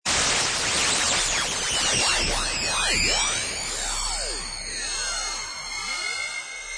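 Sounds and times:
insane electric noises: 0.1s - 6.6s.

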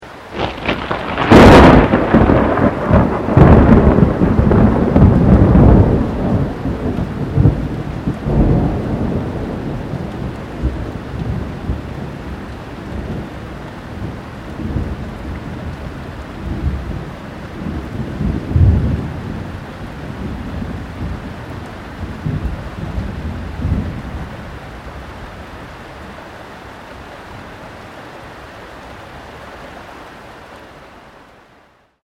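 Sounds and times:
rain: 0.0s - 32.0s
close loud thunder: 0.3s - 13.2s, 17.6s - 21.3s, 22.0s - 24.3s.

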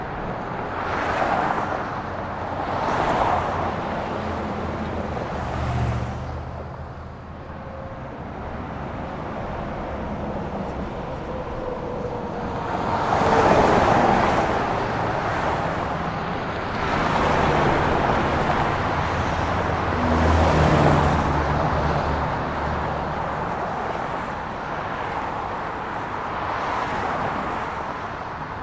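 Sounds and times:
heavy highway traffic: 0.0s - 28.6s.

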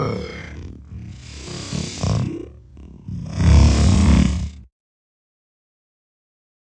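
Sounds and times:
metallic sci-fi alien snort made from human voice: 0.2s - 4.7s.

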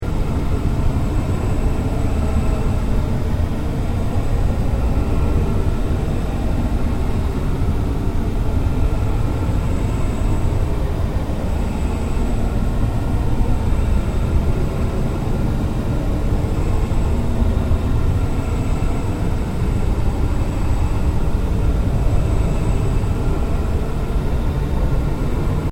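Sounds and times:
ambient drone: 0.0s - 25.7s.

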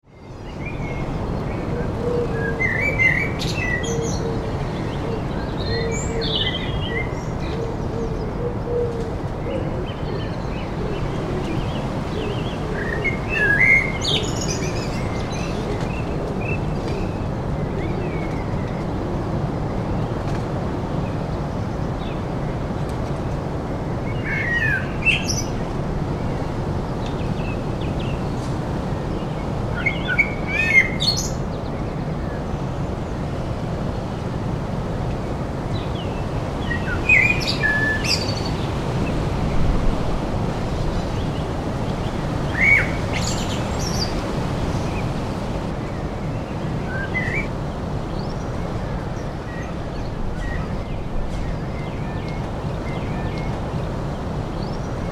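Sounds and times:
heavy birdsong: 0.0s - 55.1s
wind in trees: 0.0s - 55.1s.

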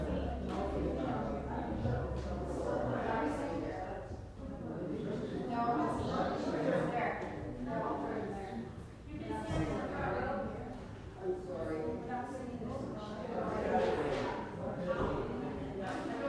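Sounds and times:
church choir crowd chatting and moving: 0.0s - 16.2s.

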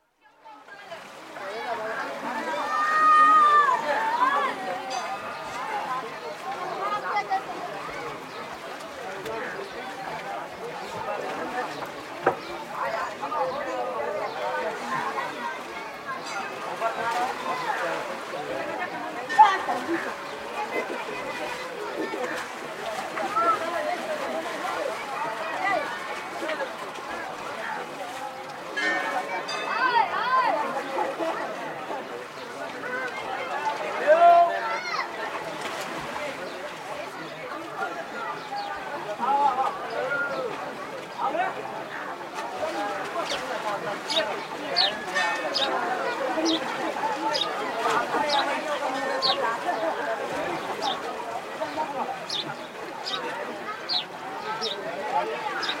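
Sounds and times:
splashes at bathing ghats in Benares: 0.4s - 55.7s
distant bell in Benares: 28.7s - 30.2s, 45.0s - 46.0s.

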